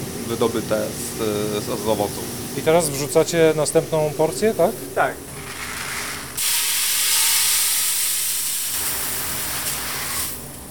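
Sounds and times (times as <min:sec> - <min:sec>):
coffee roaster cooling tray humming: 0:00.0 - 0:10.6
speech: 0:00.3 - 0:05.3.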